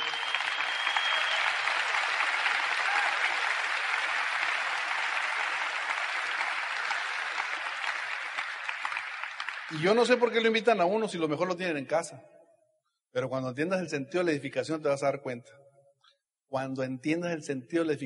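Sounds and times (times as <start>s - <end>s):
loud audience applause: 0.0s - 10.3s
speech: 9.7s - 12.4s, 13.2s - 15.6s, 16.5s - 18.0s.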